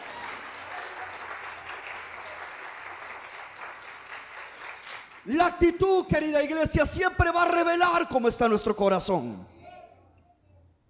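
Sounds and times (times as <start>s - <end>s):
audience applause: 0.0s - 5.3s
speech: 5.2s - 9.5s.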